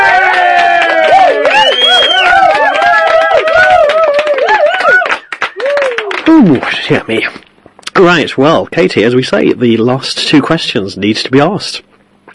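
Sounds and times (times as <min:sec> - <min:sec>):
applause sound effect: 0:00.0 - 0:06.8
speech: 0:06.9 - 0:07.4, 0:08.0 - 0:11.9.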